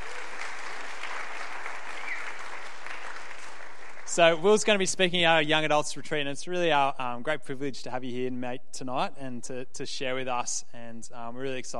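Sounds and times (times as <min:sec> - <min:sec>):
church audience applause welcoming a guest speaker: 0:00.0 - 0:04.5
speech: 0:04.2 - 0:11.7.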